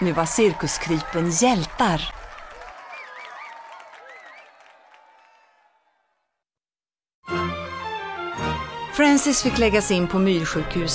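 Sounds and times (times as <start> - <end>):
speech: 0.0 - 2.2, 9.0 - 10.9
applause and cheering: 0.0 - 6.4.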